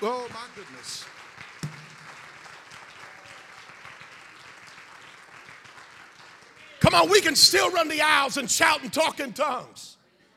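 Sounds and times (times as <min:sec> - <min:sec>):
speech: 0:00.0 - 0:01.5, 0:06.8 - 0:10.0
audience clapping hands: 0:00.0 - 0:07.4.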